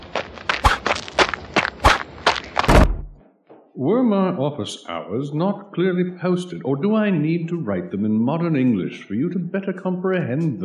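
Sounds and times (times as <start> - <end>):
footsteps of several people running away: 0.0 - 3.6
speech: 3.8 - 10.6.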